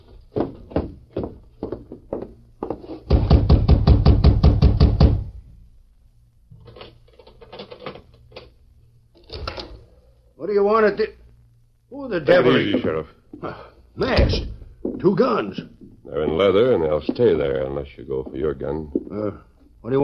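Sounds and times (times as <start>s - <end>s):
knocking on a wooden door: 3.1s - 5.3s
speech: 10.5s - 11.2s, 12.1s - 20.0s.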